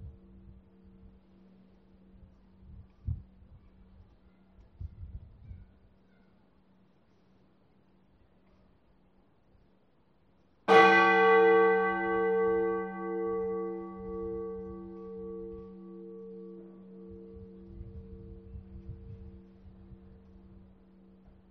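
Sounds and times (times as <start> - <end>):
bell: 10.7 - 21.5.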